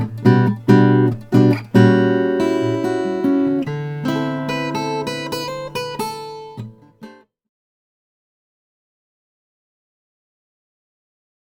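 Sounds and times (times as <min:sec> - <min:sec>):
guitar made of old European maple: 0:00.0 - 0:07.3.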